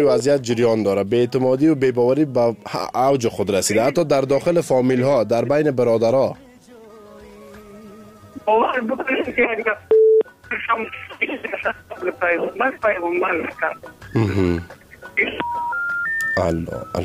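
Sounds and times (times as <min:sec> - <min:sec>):
man's voice cutting in and out over a phone line: 0:00.0 - 0:06.3, 0:16.2 - 0:17.0
speech: 0:00.0 - 0:06.5, 0:08.4 - 0:09.9, 0:10.5 - 0:15.7, 0:16.4 - 0:17.0.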